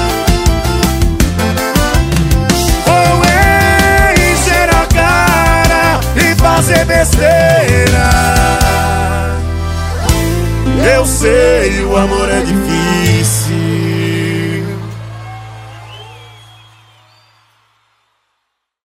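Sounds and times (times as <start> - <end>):
electro funk and sertanejo music: 0.0 - 14.9.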